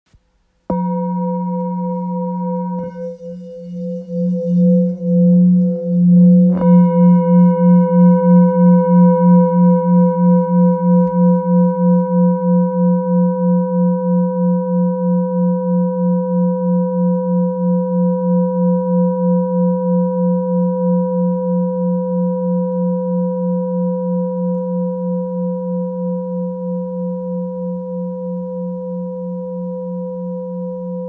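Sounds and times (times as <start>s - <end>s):
old F Tibetan singing bowl ringing: 0.7s - 31.0s.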